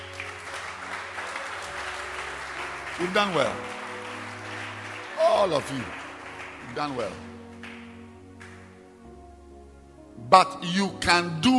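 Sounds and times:
church congregation clapping hands: 0:00.0 - 0:09.0
speech: 0:03.0 - 0:03.8, 0:05.4 - 0:06.0, 0:06.7 - 0:07.4, 0:10.3 - 0:11.5.

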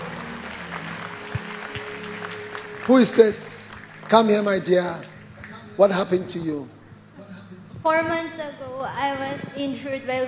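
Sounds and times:
audience applause: 0:00.0 - 0:05.6
speech: 0:02.9 - 0:03.5, 0:04.1 - 0:05.1, 0:05.8 - 0:06.8, 0:07.8 - 0:10.2.

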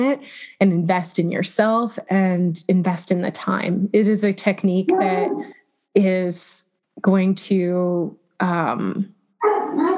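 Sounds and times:
speech: 0:00.0 - 0:09.2
dog giving drawn-out whining barks: 0:09.4 - 0:09.9.

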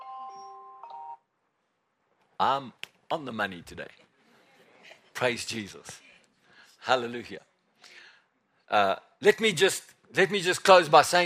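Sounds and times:
timer alarm chime: 0:00.0 - 0:01.2
speech: 0:02.4 - 0:04.0, 0:05.2 - 0:06.1, 0:06.8 - 0:08.0, 0:08.7 - 0:11.2.

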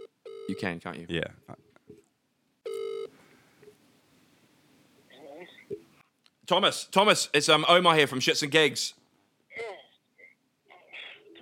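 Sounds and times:
outgoing call ring tone: 0:00.0 - 0:00.6, 0:02.6 - 0:03.1
low hiss: 0:00.0 - 0:11.3
speech: 0:00.5 - 0:01.6, 0:06.5 - 0:09.0.

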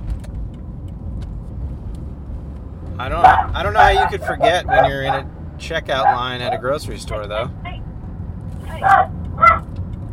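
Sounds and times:
speech: 0:03.0 - 0:07.6, 0:08.8 - 0:09.2
dogs fighting: 0:03.1 - 0:05.3, 0:06.0 - 0:07.8, 0:08.7 - 0:09.6.

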